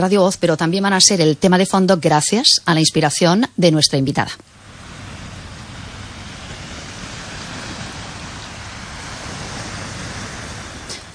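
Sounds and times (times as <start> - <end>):
speech: 0.0 - 4.6
sea waves: 4.4 - 11.1.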